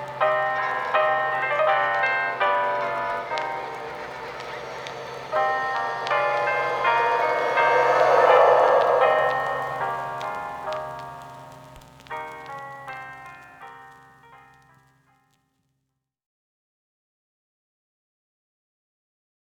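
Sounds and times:
choral and orchestral passion music: 0:00.3 - 0:11.1.

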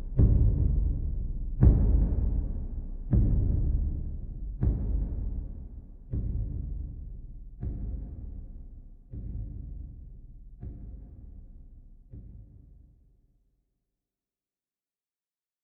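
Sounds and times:
ceremonial drums: 0:00.0 - 0:08.5, 0:09.1 - 0:11.4.

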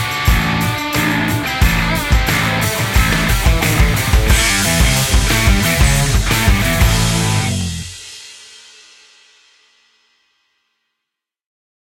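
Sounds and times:
rock music: 0:00.0 - 0:08.1.

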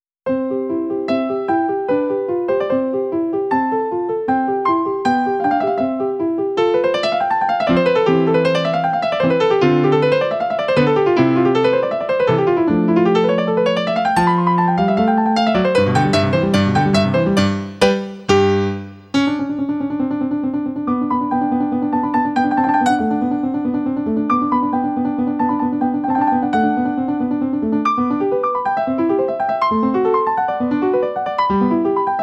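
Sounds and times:
piano competition piece: 0:00.2 - 0:32.2.

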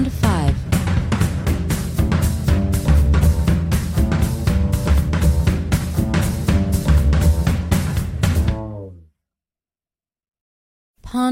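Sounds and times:
swing jazz go-go drums: 0:00.0 - 0:08.9.

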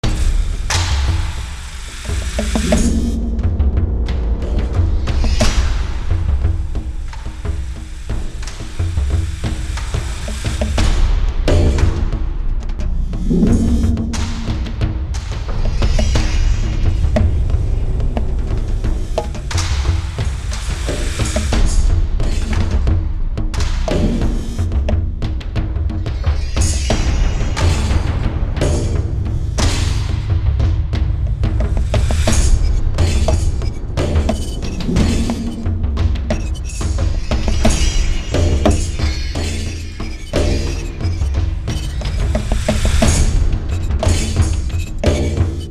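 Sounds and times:
rural battle percussion loop: 0:00.0 - 0:45.6.

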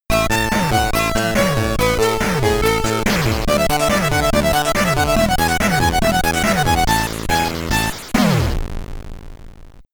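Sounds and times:
SID chip stereo music: 0:00.1 - 0:08.6.

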